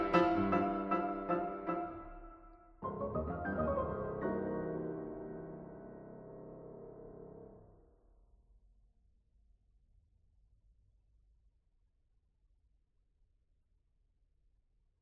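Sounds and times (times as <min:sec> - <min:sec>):
piano duet sonata: 0:00.0 - 0:07.7.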